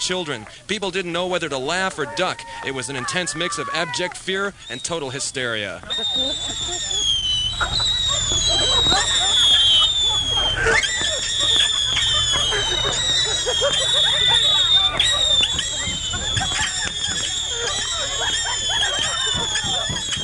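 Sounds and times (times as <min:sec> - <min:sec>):
speech: 0:00.0 - 0:07.8
laughter: 0:00.0 - 0:20.2
whistling helicopters: 0:00.0 - 0:20.2
fireworks and bottle rockets exploding: 0:04.7 - 0:20.2.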